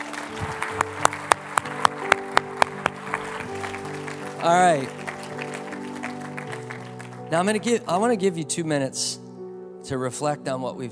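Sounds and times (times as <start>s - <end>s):
steady rhythmic audience clapping: 0.0s - 8.1s
sustained musical tones humming: 0.0s - 8.4s
speech: 4.4s - 5.0s, 7.3s - 9.2s, 9.9s - 10.9s.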